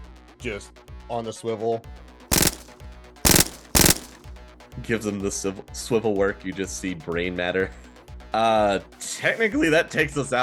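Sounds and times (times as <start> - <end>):
speech: 0.4 - 2.0, 4.8 - 10.4
gunfire bursts: 2.3 - 4.3.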